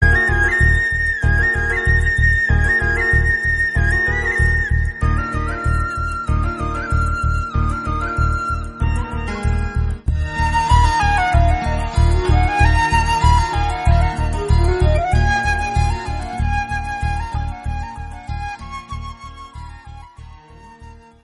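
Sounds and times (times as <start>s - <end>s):
background music: 0.0s - 21.2s.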